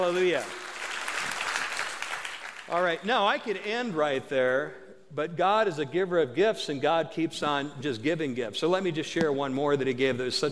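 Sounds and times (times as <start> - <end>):
speech: 0.0 - 0.6, 2.7 - 10.5
audience hand clapping in praise: 0.0 - 3.6.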